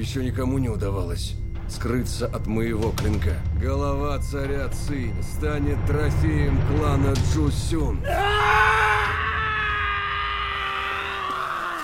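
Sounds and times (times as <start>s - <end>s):
speech: 0.0s - 8.6s
man screaming during a sword-fight scene in a film: 8.0s - 11.8s.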